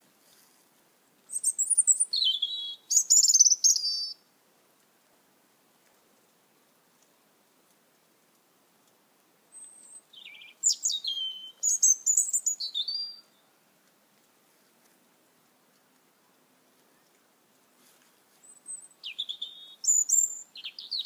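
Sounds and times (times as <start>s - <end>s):
bird singing high-pitched whistled phrases at night: 1.3s - 4.2s, 9.6s - 13.4s, 18.4s - 21.0s.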